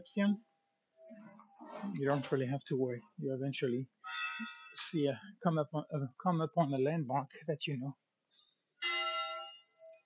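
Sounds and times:
speech: 0.0s - 0.5s, 1.7s - 8.0s
church bell ringing: 8.8s - 9.7s.

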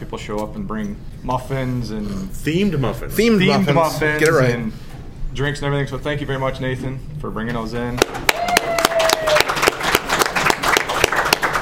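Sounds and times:
speech: 0.1s - 8.2s
audience clapping: 8.0s - 11.6s.

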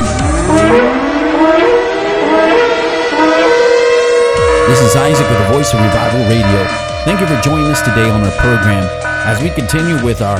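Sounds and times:
alarm siren sound effect: 0.0s - 10.3s
speech: 4.9s - 10.3s.

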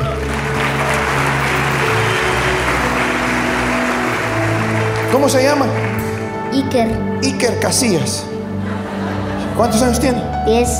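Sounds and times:
audience applause: 0.0s - 6.5s
speech: 5.1s - 5.9s, 6.5s - 8.3s, 9.6s - 10.7s
laughter: 8.3s - 10.3s.

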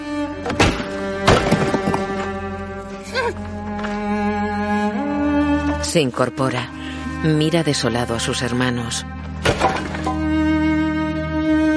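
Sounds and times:
low droning musical tone: 0.0s - 11.7s
fists pounding on bricks: 0.6s - 2.1s
speech: 6.0s - 9.9s.

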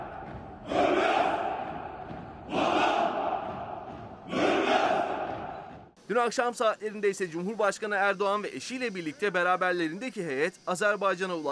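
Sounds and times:
Turkish commandos shouting in unison in the streets: 0.0s - 5.7s
crowd din: 0.0s - 5.9s
speech: 6.1s - 11.5s.

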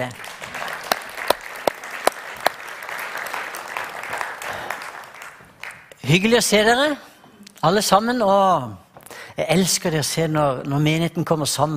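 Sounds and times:
speech: 0.0s - 0.3s, 6.1s - 8.8s, 9.4s - 11.7s
audience applause: 0.0s - 6.0s.

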